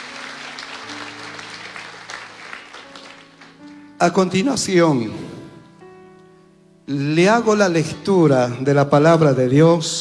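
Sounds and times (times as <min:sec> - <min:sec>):
audience applause: 0:00.0 - 0:03.7
speech: 0:04.0 - 0:05.4, 0:06.9 - 0:10.0.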